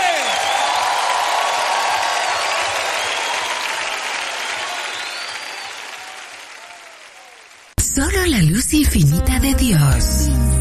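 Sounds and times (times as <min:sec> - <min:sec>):
church congregation applauding in praise during worship: 0:00.0 - 0:07.8
speech: 0:08.0 - 0:10.5.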